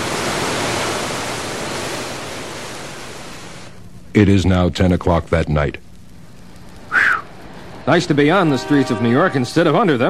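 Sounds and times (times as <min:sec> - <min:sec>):
rushing flood water: 0:00.0 - 0:03.7
speech: 0:04.2 - 0:05.9, 0:07.9 - 0:10.0.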